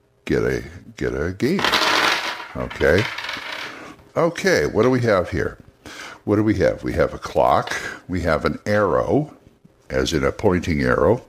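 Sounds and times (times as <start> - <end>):
speech: 0.3 - 3.2, 4.2 - 5.6, 6.3 - 11.2
story dice being rolled: 1.6 - 3.8.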